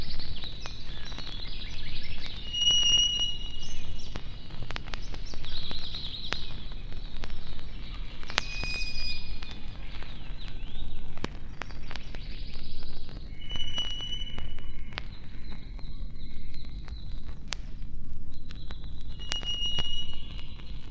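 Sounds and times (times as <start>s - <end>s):
forest songbird song with thin high whistled notes: 0.0s - 17.4s, 18.3s - 20.8s.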